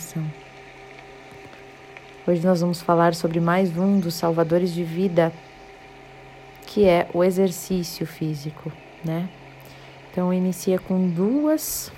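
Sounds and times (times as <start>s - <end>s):
low constant hum: 0.0s - 11.9s
steady rain falling: 0.0s - 11.9s
speech: 0.1s - 0.4s, 2.3s - 5.5s, 6.8s - 9.4s, 10.1s - 11.9s.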